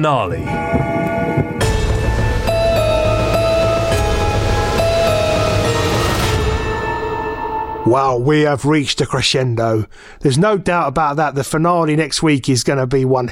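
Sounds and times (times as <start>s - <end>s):
speech: 0.0s - 1.6s, 7.8s - 13.3s
clock striking midnight: 0.5s - 7.8s.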